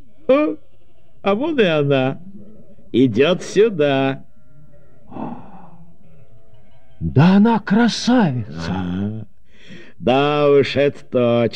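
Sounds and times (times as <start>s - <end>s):
sheep bleating as a flock is brought to a well: 0.0s - 7.3s
speech: 0.3s - 0.6s, 1.2s - 2.3s, 2.9s - 4.2s, 7.0s - 9.3s, 10.0s - 11.5s.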